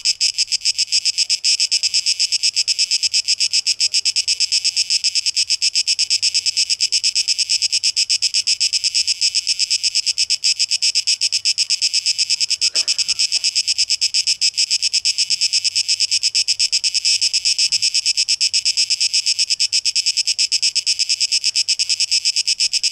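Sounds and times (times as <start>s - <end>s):
cicadas producing a shrill throbbing buzz: 0.0s - 22.9s.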